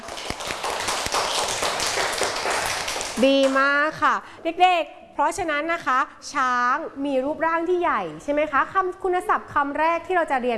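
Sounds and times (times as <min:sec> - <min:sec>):
children clapping hands: 0:00.0 - 0:03.6
speech: 0:03.2 - 0:10.5.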